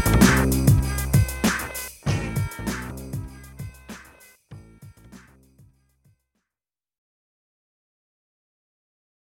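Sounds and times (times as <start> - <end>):
chaotic groove: 0.0 - 5.8.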